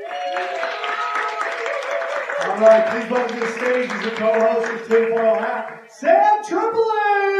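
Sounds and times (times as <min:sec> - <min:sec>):
audience applause: 0:00.0 - 0:05.9
speech: 0:02.4 - 0:07.3.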